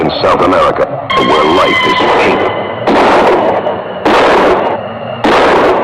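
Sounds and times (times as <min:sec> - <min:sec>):
speech: 0:00.2 - 0:02.4
thunderclap in a violent summer storm: 0:02.6 - 0:05.8.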